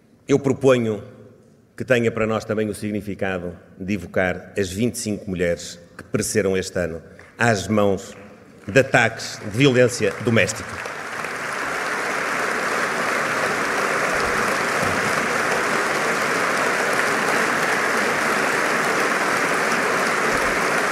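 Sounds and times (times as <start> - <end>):
speech: 0.3 - 1.1, 1.8 - 11.0
strong applause from a pavilion audience: 8.5 - 20.9.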